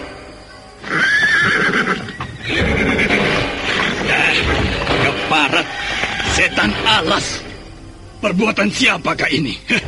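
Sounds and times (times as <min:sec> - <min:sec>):
horses whinnying: 0:00.8 - 0:07.1
speech: 0:08.3 - 0:09.8.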